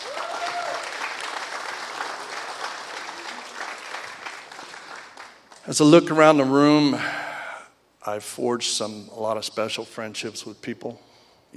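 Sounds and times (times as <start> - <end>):
audience applause: 0.0 - 5.6
speech: 5.7 - 7.2, 8.0 - 11.5.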